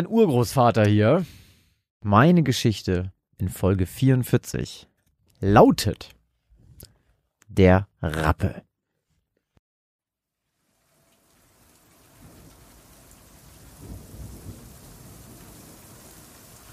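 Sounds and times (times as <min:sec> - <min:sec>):
speech: 0:00.0 - 0:01.4, 0:02.0 - 0:06.2, 0:07.5 - 0:08.7
rain falling: 0:10.4 - 0:16.7.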